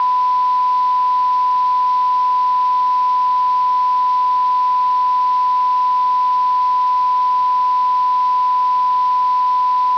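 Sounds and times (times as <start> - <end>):
1kHz test tone at 12.00 dBFS: 0.0 - 9.9.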